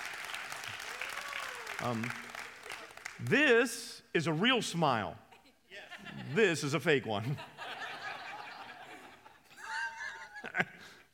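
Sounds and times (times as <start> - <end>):
audience applause: 0.0 - 3.4
speech: 1.8 - 2.3, 3.2 - 7.5
laughter: 5.3 - 6.6, 7.2 - 11.0.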